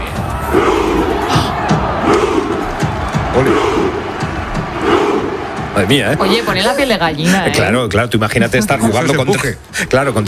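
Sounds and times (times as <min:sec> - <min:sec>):
football fans chanting a Viking rowing chant: 0:00.0 - 0:07.5
speech: 0:05.8 - 0:10.2.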